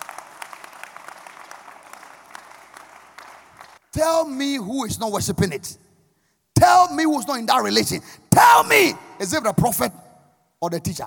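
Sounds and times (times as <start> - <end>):
audience applause: 0.0 - 3.8
speech: 3.9 - 5.8, 6.9 - 10.0, 10.6 - 11.0.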